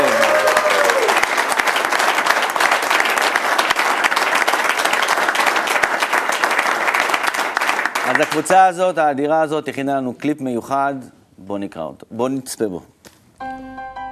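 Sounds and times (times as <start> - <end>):
audience applause: 0.0 - 8.5
speech: 8.4 - 12.9.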